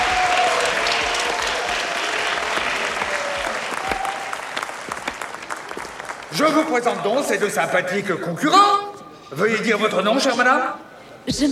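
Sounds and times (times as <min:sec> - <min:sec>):
studio audience applauding: 0:00.0 - 0:07.0
speech: 0:06.4 - 0:11.5.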